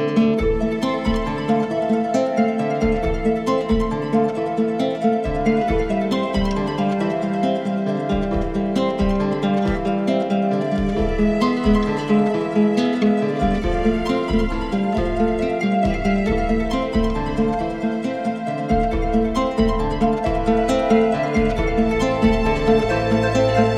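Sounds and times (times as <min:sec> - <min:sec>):
string music at 136 bpm: 0:00.2 - 0:23.7.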